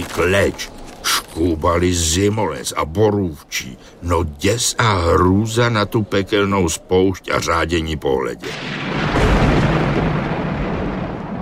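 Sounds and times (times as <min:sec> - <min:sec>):
speech: 0:00.1 - 0:00.8, 0:01.4 - 0:09.4
thunder clap: 0:08.5 - 0:11.3.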